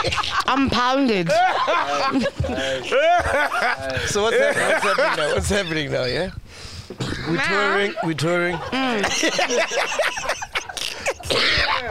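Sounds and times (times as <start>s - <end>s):
laughter: 0.0s - 6.3s, 7.2s - 11.8s
speech: 0.0s - 10.4s
person coughing while choking on nuts: 6.9s - 7.4s, 10.7s - 11.8s.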